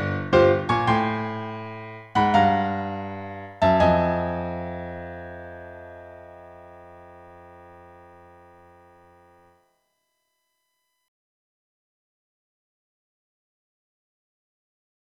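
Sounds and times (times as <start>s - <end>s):
piano: 0.0s - 9.7s.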